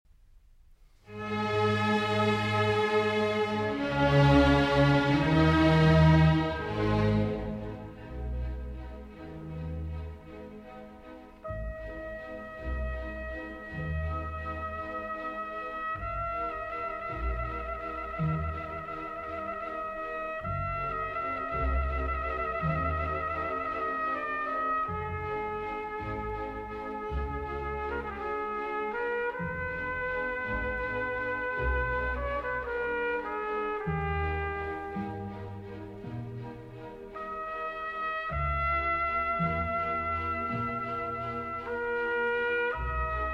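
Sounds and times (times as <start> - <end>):
trumpet concerto andante: 1.0 - 43.3.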